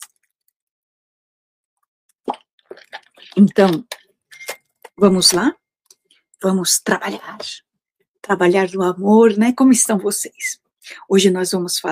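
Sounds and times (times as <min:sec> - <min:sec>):
person sipping and swallowing water: 0:02.2 - 0:04.1
speech: 0:03.4 - 0:03.9, 0:05.0 - 0:05.6, 0:06.4 - 0:07.6, 0:08.2 - 0:11.9.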